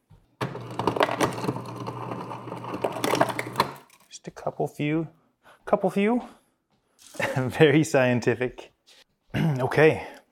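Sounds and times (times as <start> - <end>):
ice cubes dropped into cold water: 0.9 - 4.1
speech: 4.2 - 6.4, 7.2 - 8.7, 9.4 - 10.1.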